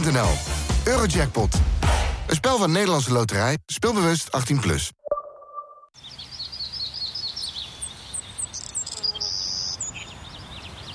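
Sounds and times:
speech: 0.1s - 5.0s
birds whistling and singing: 6.0s - 10.9s.

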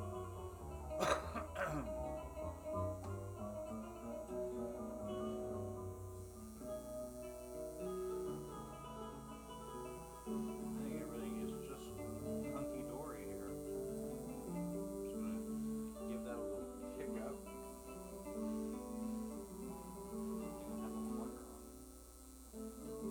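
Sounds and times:
electrical hum: 0.0s - 23.0s
soft sustained musical tones at a live music night: 0.0s - 23.0s
person vaping coughing: 1.0s - 1.9s.

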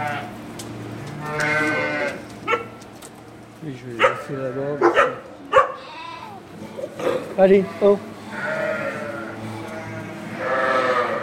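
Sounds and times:
ewes bleating in a flock: 0.0s - 0.3s, 1.2s - 2.2s, 4.0s - 4.9s, 5.6s - 6.5s, 7.4s - 11.2s
speech: 3.6s - 5.3s, 7.0s - 8.1s.

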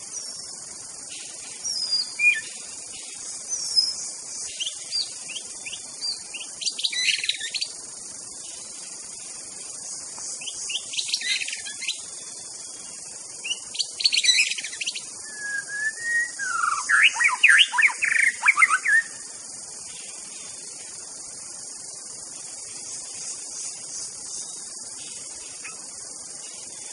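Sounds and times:
steady hiss: 0.0s - 26.9s
White-rumped shama song: 1.2s - 7.8s, 10.4s - 12.1s, 13.4s - 19.2s, 24.4s - 26.9s.

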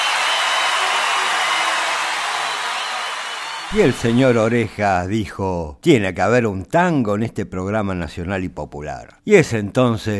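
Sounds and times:
audience applause: 0.0s - 4.4s
speech: 3.7s - 10.1s.

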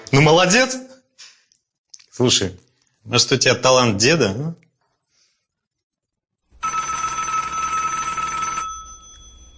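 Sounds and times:
speech: 0.1s - 0.9s, 2.2s - 4.6s
telephone ringing with a bright electronic trill: 6.6s - 9.5s.

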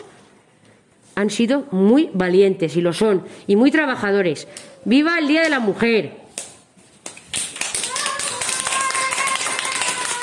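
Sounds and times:
speech: 1.2s - 6.2s
class of four-year-old children clapping at a school Women's Day celebration: 6.4s - 10.2s.

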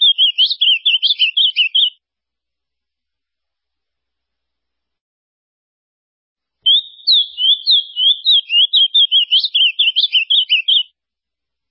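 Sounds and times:
ultramarine grosbeak song: 0.0s - 2.0s, 6.7s - 10.9s.

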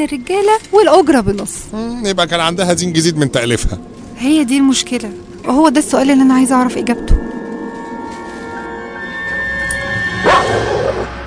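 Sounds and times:
speech: 0.0s - 7.2s
low hum: 0.0s - 11.2s
chained guard dog at a villa barking and whining: 10.2s - 11.1s.

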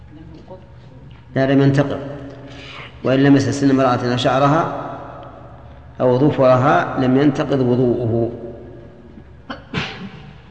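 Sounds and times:
speech: 0.2s - 2.2s, 3.0s - 4.8s, 6.0s - 8.4s
person sneezing: 9.5s - 10.3s.

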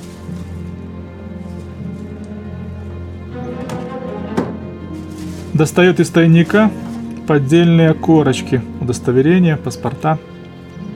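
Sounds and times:
knocking on wooden drawers: 3.5s - 4.7s
speech: 5.6s - 10.3s.

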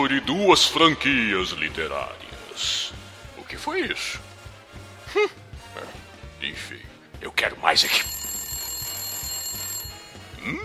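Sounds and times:
speech: 0.0s - 3.0s, 3.6s - 4.3s, 5.1s - 5.9s, 6.5s - 8.2s, 10.4s - 10.6s
telephone ringing at home: 7.7s - 10.6s.

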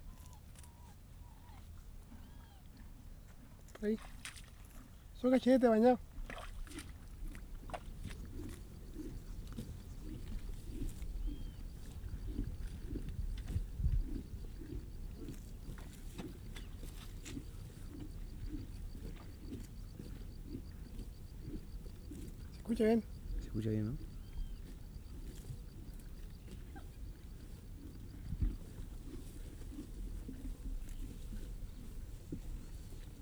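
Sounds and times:
speech: 3.8s - 4.3s, 5.2s - 6.1s, 22.8s - 24.1s
horse hooves clip-clopping: 6.3s - 33.2s.

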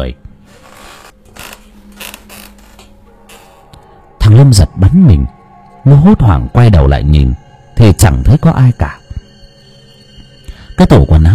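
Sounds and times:
speech: 0.0s - 0.6s, 4.3s - 9.0s, 10.8s - 11.3s
wooden wardrobe door slowly creaking open: 0.7s - 3.6s.

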